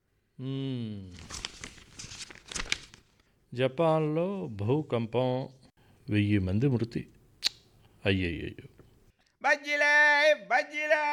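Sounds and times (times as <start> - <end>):
speech: 0.4 - 1.4, 3.5 - 7.2, 8.0 - 8.8, 9.4 - 11.1
newspaper rustling as it is opened to read: 1.2 - 3.3.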